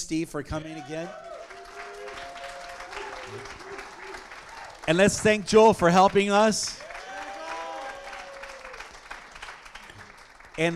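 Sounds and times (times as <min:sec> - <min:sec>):
speech: 0:00.0 - 0:01.3, 0:03.3 - 0:03.7, 0:04.9 - 0:06.9, 0:10.6 - 0:10.7
audience clapping: 0:00.6 - 0:10.7
loud vocal whoop: 0:00.7 - 0:04.8, 0:06.8 - 0:08.8.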